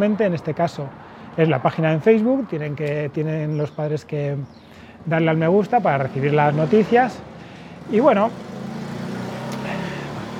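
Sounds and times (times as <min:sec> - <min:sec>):
speech: 0:00.0 - 0:07.3, 0:07.9 - 0:08.6
motorcycle passing by outside: 0:05.0 - 0:10.3.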